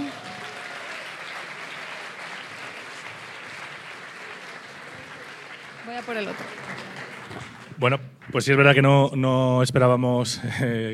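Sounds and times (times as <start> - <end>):
applause: 0.0 - 8.6
speech: 5.8 - 10.9.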